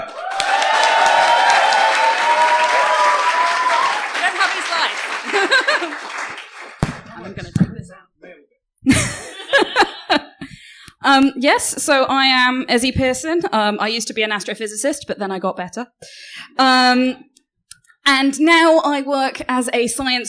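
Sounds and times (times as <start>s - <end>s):
audience applause: 0.0s - 7.2s
laughter: 4.3s - 6.4s, 8.9s - 10.6s
speech: 11.1s - 17.3s, 18.1s - 20.2s.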